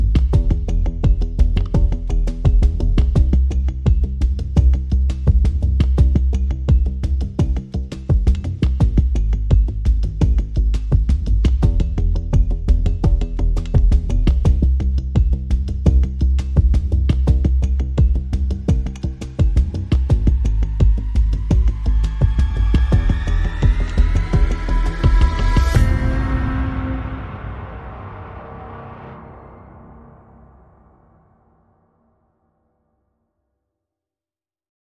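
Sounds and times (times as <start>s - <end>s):
drums: 0.0s - 29.8s
bass: 0.0s - 30.8s
sound effects: 22.3s - 31.8s.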